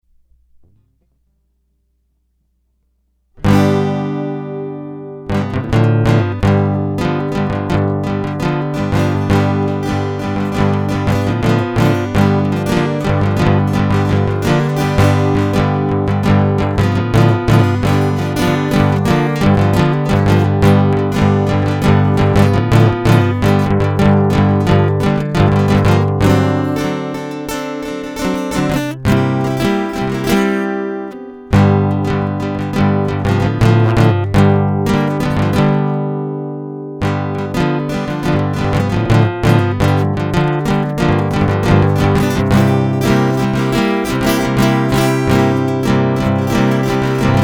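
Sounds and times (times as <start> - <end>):
guitar loop: 3.4 - 47.4.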